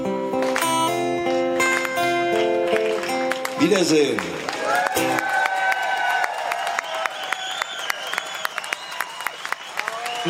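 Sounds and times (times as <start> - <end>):
audience applauding: 0.4 - 10.2
speech: 3.6 - 4.4
audience cheering: 3.6 - 10.2
whistle-like tones: 6.8 - 10.2.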